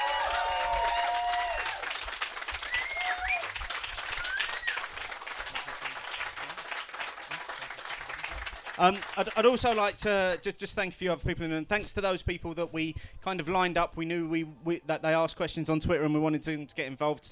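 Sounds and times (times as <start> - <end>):
large crowd applause in a tent: 0.0 - 9.8
speech: 8.8 - 17.3.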